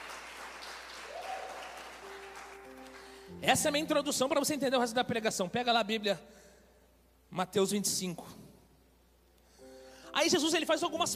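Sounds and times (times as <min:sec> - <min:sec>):
audience applause: 0:00.0 - 0:03.3
speech: 0:03.4 - 0:06.4, 0:07.4 - 0:08.4, 0:10.2 - 0:11.1.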